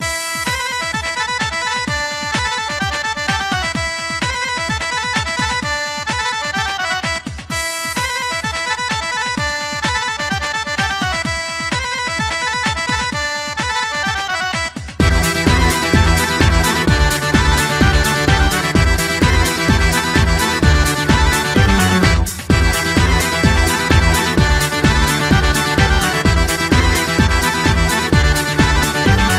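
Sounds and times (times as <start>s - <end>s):
Albanian music mix: 0.0s - 29.3s.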